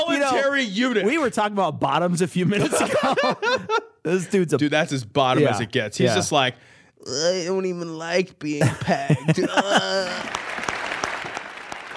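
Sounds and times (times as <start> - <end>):
speech: 0.2 - 10.4
laughter: 2.5 - 4.3, 8.6 - 10.4
audience applause: 9.7 - 11.9.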